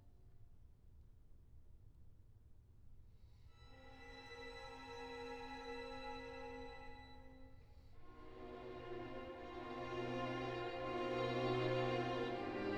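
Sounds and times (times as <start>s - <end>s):
orchestral etude: 3.6s - 12.7s.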